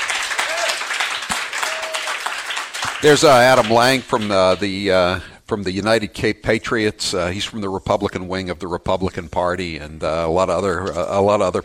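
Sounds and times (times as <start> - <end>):
audience applause at a gun shop event: 0.0 - 4.6
speech: 3.0 - 11.6.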